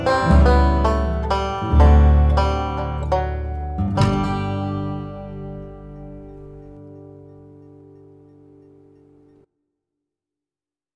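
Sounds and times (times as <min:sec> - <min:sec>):
banjo: 0:00.0 - 0:07.4.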